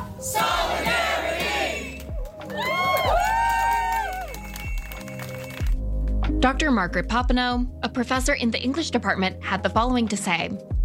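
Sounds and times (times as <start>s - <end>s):
lively crowd shouting and cheering at a rally: 0.2s - 5.4s
speech: 6.4s - 10.7s.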